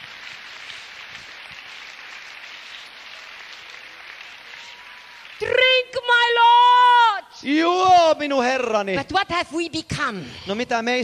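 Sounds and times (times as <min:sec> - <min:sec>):
audience clapping: 0:00.0 - 0:06.6
speech: 0:05.4 - 0:06.6, 0:07.4 - 0:11.0.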